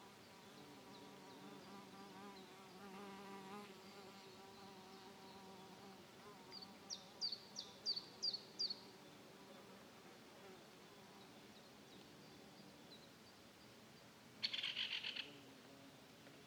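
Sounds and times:
forest ambience in Bern Switzerland: 0.0 - 16.4.

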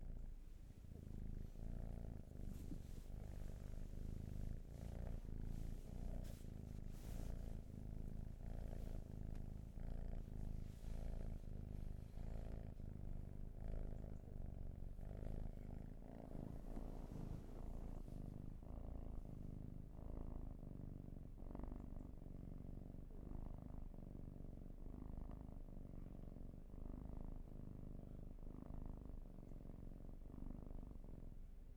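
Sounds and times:
soft rustles: 0.0 - 19.3
domestic cat purring: 0.0 - 31.7.

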